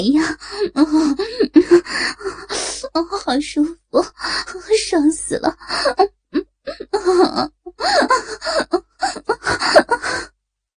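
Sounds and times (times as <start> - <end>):
speech: 0.0 - 6.1
heavy panting and gasping: 0.1 - 3.0, 4.0 - 4.7, 5.6 - 7.1, 7.8 - 10.3.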